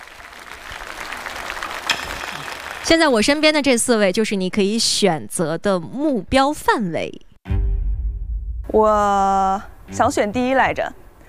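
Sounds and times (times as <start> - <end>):
audience applause welcoming contestant: 0.0 - 3.2
speech: 2.9 - 7.3, 8.7 - 11.0.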